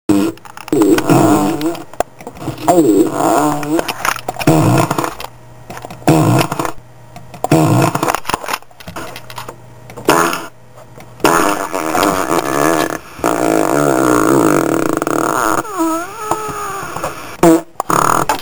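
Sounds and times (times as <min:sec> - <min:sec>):
fart: 0:00.1 - 0:05.2, 0:06.0 - 0:06.8, 0:07.4 - 0:08.2, 0:10.0 - 0:10.6, 0:11.2 - 0:18.4.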